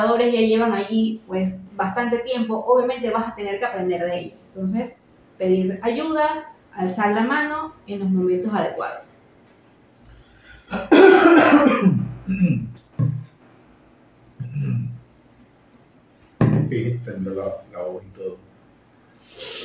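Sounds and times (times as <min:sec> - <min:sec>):
speech: 0:00.0 - 0:09.2, 0:10.7 - 0:12.8, 0:16.7 - 0:18.4
person coughing: 0:10.7 - 0:12.7.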